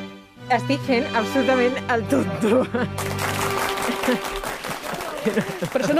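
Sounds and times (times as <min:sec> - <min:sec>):
speech: 0:00.5 - 0:03.4, 0:04.1 - 0:04.4, 0:05.3 - 0:05.9
laughter: 0:02.1 - 0:05.9
applause: 0:03.0 - 0:05.9.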